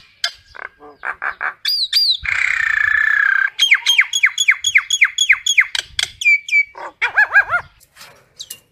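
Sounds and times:
common myna calls: 0.3 - 5.0, 6.6 - 7.8.

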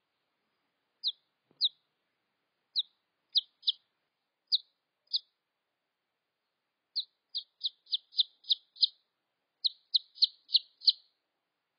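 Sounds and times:
red junglefowl chick peeping: 1.0 - 1.8, 2.7 - 3.8, 4.5 - 5.4, 7.0 - 9.0, 9.6 - 11.1.

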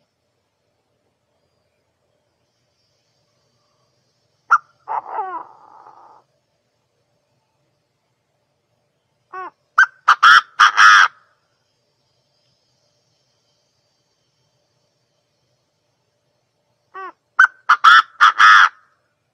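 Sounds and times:
partridge calling: 4.5 - 6.2, 9.3 - 11.2, 16.9 - 18.8.

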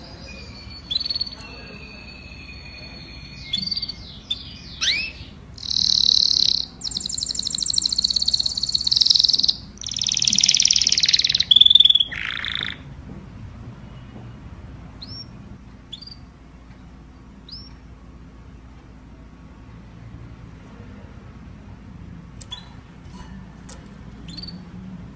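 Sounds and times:
domestic canary singing: 0.0 - 12.9, 15.0 - 16.3, 17.4 - 17.9, 23.6 - 25.0.

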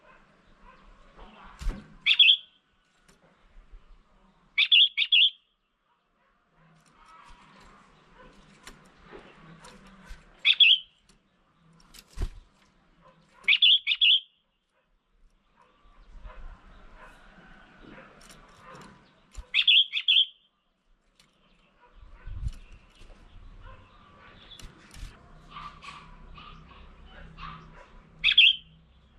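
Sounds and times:
red-whiskered bulbul chirping: 2.0 - 2.6, 4.6 - 5.5, 10.4 - 11.0, 13.4 - 14.4, 19.4 - 20.5, 28.2 - 28.8.

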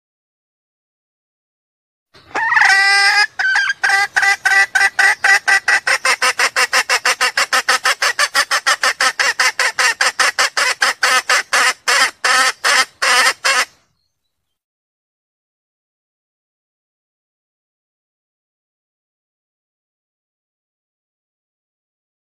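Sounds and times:
junglefowl clucking: 2.2 - 13.8.

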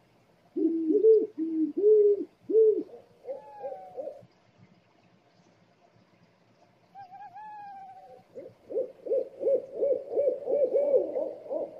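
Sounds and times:
scops owl hooting: 0.6 - 4.2, 7.0 - 11.7.

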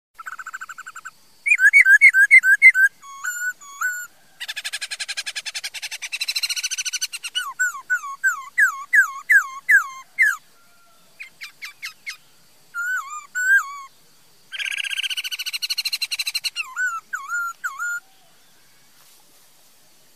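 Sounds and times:
laughingthrush song: 0.2 - 10.4, 12.8 - 13.9, 14.6 - 18.0.

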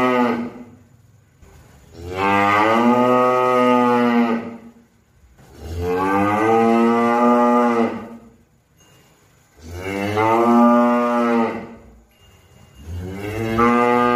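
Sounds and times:
cow mooing: 0.0 - 0.8, 1.9 - 4.8, 5.4 - 8.3, 9.6 - 12.0, 12.8 - 14.1.

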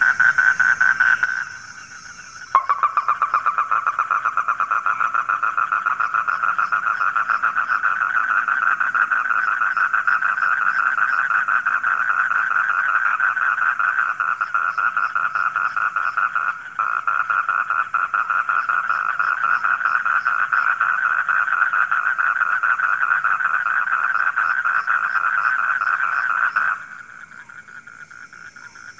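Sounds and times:
frog chorus trilling: 0.0 - 28.9
faint higher calls: 1.6 - 3.6.

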